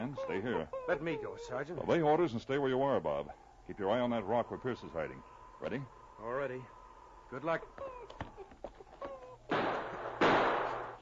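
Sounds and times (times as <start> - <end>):
speech: 0.1 - 8.3
gunshots in a firefight among rocks: 9.5 - 11.0.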